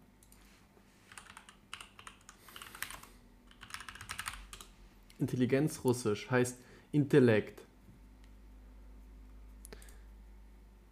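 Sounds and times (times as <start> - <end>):
keyboard typing for a web search: 1.1 - 4.7
speech: 5.2 - 7.6.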